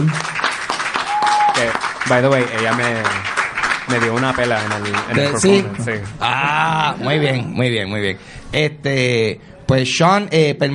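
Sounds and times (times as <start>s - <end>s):
speech: 0.0s - 0.3s, 1.7s - 10.7s
audience applause: 0.0s - 6.9s.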